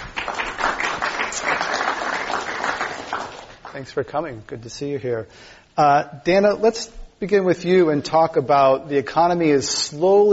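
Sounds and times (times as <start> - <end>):
audience applause welcoming a panel of reporters at a Climate One event: 0.0 - 3.8
speech: 3.8 - 10.3.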